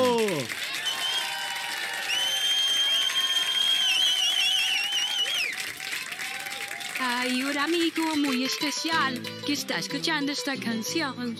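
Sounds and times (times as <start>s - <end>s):
audience applause: 0.0s - 9.0s
speech: 7.6s - 11.3s.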